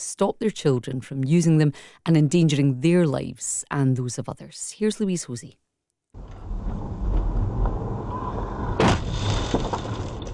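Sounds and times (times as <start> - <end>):
speech: 0.0 - 6.4
high-speed e-motorbike crashing into a car: 6.2 - 10.3
steady rumbling road and wind noise: 6.2 - 10.3.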